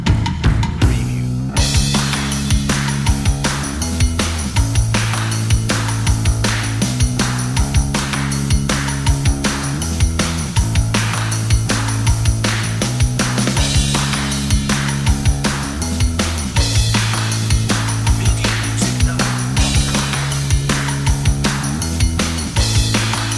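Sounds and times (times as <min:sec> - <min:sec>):
bass: 0:00.0 - 0:23.3
driving fun drums: 0:00.0 - 0:23.3.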